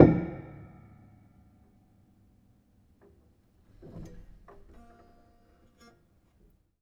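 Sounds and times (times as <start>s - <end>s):
piano hammer percussion: 0.0s - 0.9s.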